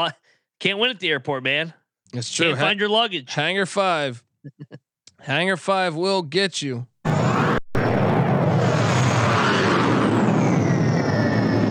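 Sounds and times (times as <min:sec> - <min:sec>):
speech: 0:00.0 - 0:06.9
high whine sliding downward: 0:07.1 - 0:11.6
rocket or missile sound effect played as airport ambience: 0:07.1 - 0:11.6.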